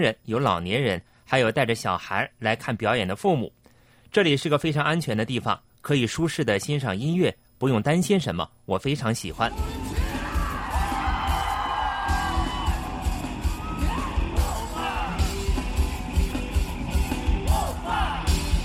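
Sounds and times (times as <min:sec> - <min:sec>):
speech: 0:00.0 - 0:09.9
rock festival crowd cheering: 0:09.5 - 0:16.1, 0:17.4 - 0:18.5.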